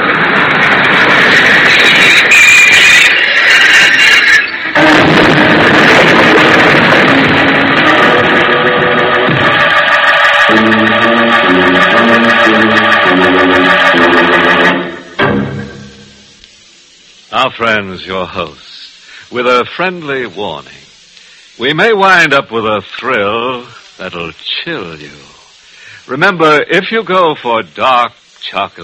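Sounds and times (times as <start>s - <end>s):
train arriving: 0.0s - 28.8s
speech: 17.6s - 18.6s, 19.3s - 20.8s, 21.6s - 25.3s, 26.1s - 28.8s.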